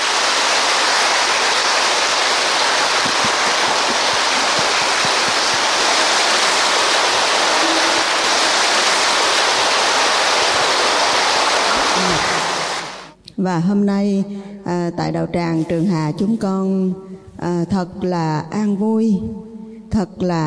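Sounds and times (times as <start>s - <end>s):
large crowd applause after a dharma talk: 0.0s - 13.1s
speech: 13.4s - 20.4s.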